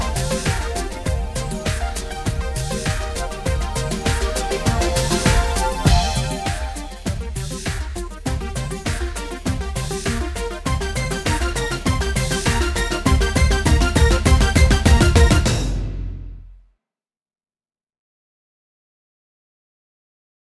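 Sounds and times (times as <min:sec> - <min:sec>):
legato synth pad at medium dynamics: 0:00.0 - 0:15.5.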